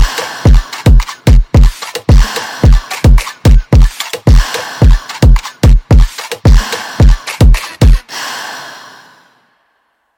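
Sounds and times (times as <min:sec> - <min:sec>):
instrumental music: 0:00.0 - 0:08.1.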